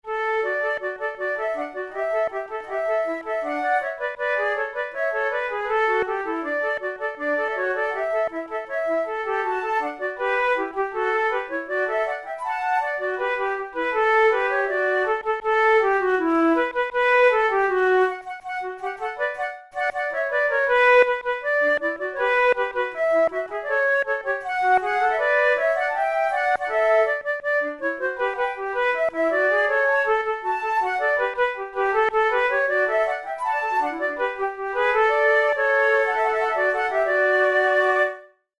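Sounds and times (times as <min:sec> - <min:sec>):
flute duet: 0:00.0 - 0:38.5.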